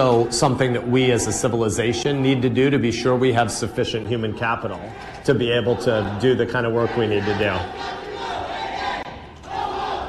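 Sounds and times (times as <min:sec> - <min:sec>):
speech: 0:00.0 - 0:08.0
crowd of protesters chanting: 0:00.0 - 0:10.0
protesters clapping in rhythm: 0:04.0 - 0:06.8.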